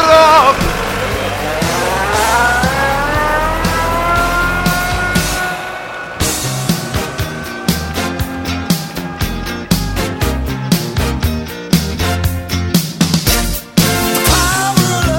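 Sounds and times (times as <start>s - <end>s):
car started and engine accelerating away: 0.0s - 8.7s
loud regular sharp rhythmic thumps: 0.0s - 15.0s.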